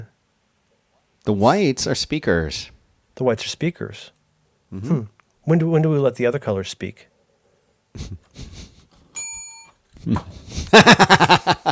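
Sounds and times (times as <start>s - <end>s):
speech: 1.3s - 7.1s, 7.9s - 8.6s, 10.0s - 11.6s
laughter: 8.0s - 8.9s, 10.0s - 11.6s
soft bell ringing: 9.2s - 9.8s.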